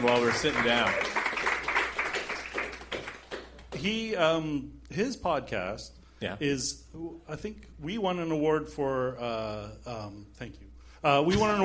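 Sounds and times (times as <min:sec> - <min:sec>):
speech: 0:00.0 - 0:01.2, 0:03.8 - 0:11.6
group clapping: 0:00.0 - 0:04.0.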